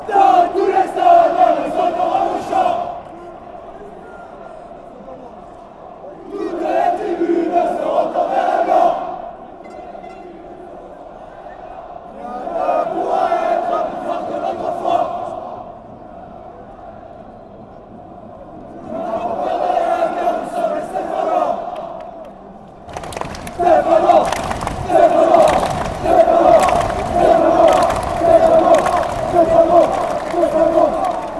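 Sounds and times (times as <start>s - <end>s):
fans chanting: 0.0s - 4.9s, 5.7s - 9.6s, 10.2s - 17.4s, 18.7s - 22.0s, 22.9s - 31.3s
people shouting: 22.9s - 31.3s.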